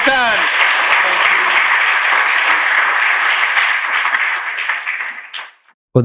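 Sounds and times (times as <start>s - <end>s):
audience applause at a live show in Bucharest: 0.0s - 5.7s.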